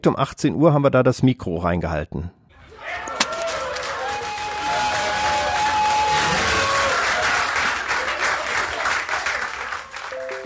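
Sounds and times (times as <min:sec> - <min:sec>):
speech: 0:00.0 - 0:02.4
party supporters cheering at election: 0:02.6 - 0:10.4
party supporters applauding at election: 0:03.3 - 0:10.4.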